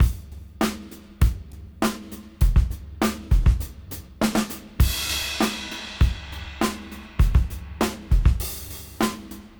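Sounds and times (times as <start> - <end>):
old school beat at 101 BPM: 0.0 - 9.5.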